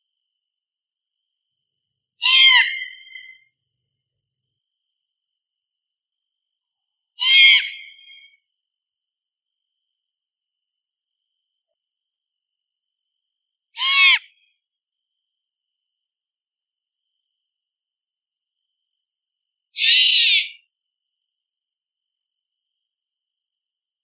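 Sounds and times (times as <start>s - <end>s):
great horned owl hooting in a big forest: 2.2s - 3.4s, 7.2s - 8.4s, 13.8s - 14.4s, 19.8s - 20.7s.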